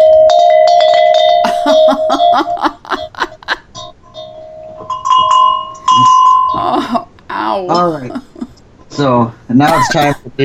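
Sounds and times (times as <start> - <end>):
rustic harmony bells with wooden clappers: 0.0 - 3.1, 3.8 - 6.7
laughter: 1.5 - 3.7, 9.6 - 10.3
speech: 1.9 - 3.0, 9.0 - 10.4.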